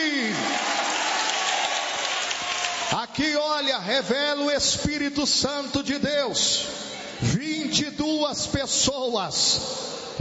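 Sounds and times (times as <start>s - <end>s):
church congregation applauding: 0.1s - 4.4s
speech: 3.2s - 6.9s, 7.7s - 10.1s.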